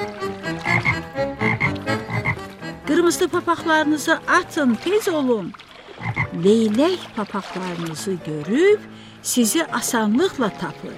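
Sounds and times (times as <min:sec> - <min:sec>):
bulging-eyed frog from a children's tale croaking: 0:00.5 - 0:02.6, 0:06.0 - 0:06.4
speech: 0:03.1 - 0:05.7, 0:06.4 - 0:10.9.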